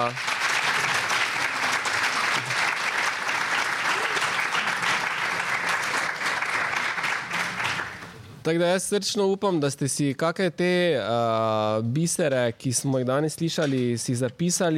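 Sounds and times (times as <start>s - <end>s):
speech: 0.0s - 0.3s, 8.4s - 14.7s
audience applause: 0.0s - 8.2s.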